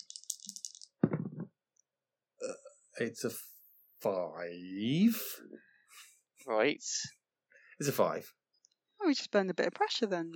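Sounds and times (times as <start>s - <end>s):
dice rattling in a cup and rolling: 0.0s - 1.0s
speech: 3.0s - 7.2s, 7.8s - 8.4s, 9.1s - 10.3s.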